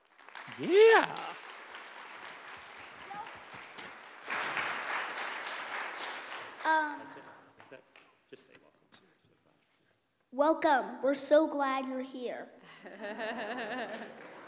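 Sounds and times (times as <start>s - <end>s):
applause greeting newcomers: 0.0s - 8.5s, 13.5s - 14.4s
laughter: 0.5s - 1.5s, 12.7s - 14.4s
speech: 0.6s - 1.4s, 6.6s - 7.8s, 10.3s - 14.2s.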